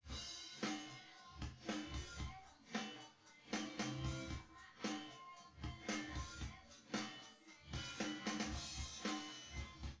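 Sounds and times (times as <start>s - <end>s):
drums: 0.0s - 9.9s.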